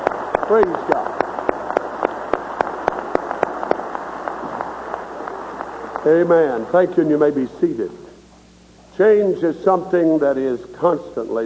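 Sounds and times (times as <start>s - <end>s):
audience clapping hands: 0.0s - 6.8s
speech: 0.5s - 1.0s, 6.0s - 8.0s, 9.0s - 11.4s.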